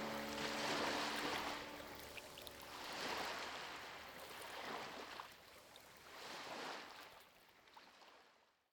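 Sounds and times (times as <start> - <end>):
melodies: 0.0 - 3.5
ocean waves: 0.0 - 7.0.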